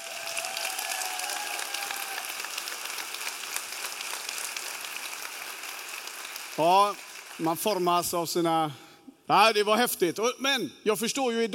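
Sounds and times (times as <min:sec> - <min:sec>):
audience applause: 0:00.0 - 0:08.0
speech: 0:06.6 - 0:11.5.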